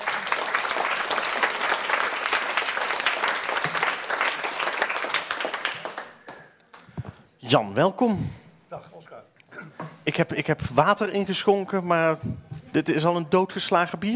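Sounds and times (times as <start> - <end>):
audience applause: 0.0 - 6.6
speech: 7.5 - 8.4, 10.1 - 14.1.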